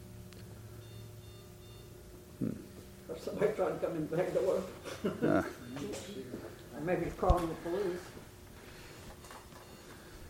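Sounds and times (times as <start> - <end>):
steady low electrical hum: 0.0 - 10.2
battery backup unit beeping: 0.8 - 1.9
speech: 2.4 - 8.2.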